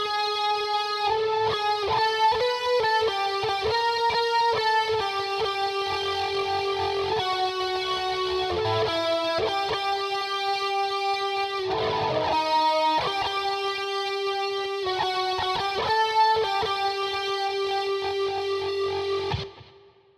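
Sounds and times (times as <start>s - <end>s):
guitar: 0.0s - 20.1s.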